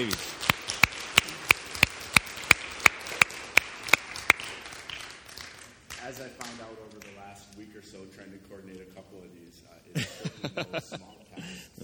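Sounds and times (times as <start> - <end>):
speech: 0.0 - 0.4, 7.6 - 11.6
sharp evenly spaced claps: 0.0 - 7.6
faint hiss: 0.0 - 11.8
laughter: 9.9 - 11.7.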